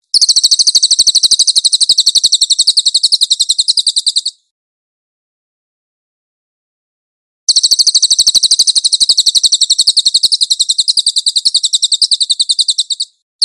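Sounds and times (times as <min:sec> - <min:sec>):
cililin bird singing shrill trill: 0:00.1 - 0:04.5, 0:07.5 - 0:13.4.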